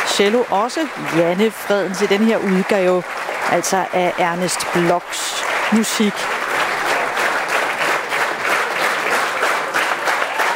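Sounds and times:
concert hall audience applause: 0:00.0 - 0:10.5
speech: 0:00.2 - 0:06.4
scattered cheers and whoops: 0:10.0 - 0:10.5.

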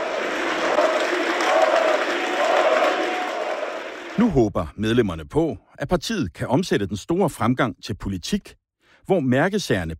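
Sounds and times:
party members rhythmically chanting a name: 0:00.0 - 0:04.2
speech: 0:04.2 - 0:09.9.

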